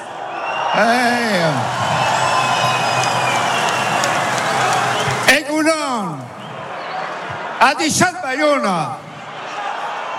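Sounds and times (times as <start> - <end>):
rising-and-falling whoop of cheering: 0.0 - 7.2
speech: 0.8 - 1.6, 7.7 - 9.0
audience applause welcoming a speaker: 0.9 - 7.1.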